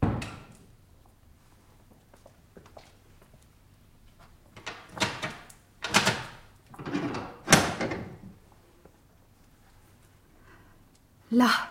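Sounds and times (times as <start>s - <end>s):
door bolt being drawn: 4.6s - 8.0s.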